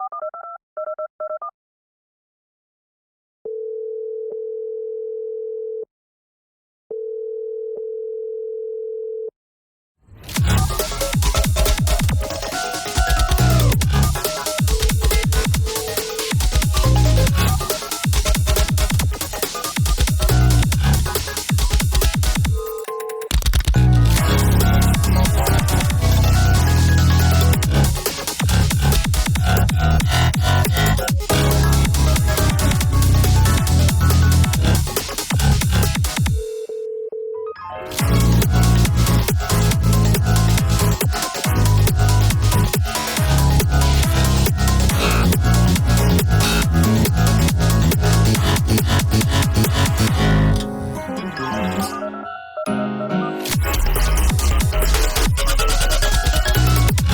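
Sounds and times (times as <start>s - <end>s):
futuristic store hold music: 10.2s - 36.5s, 37.8s - 57.1s.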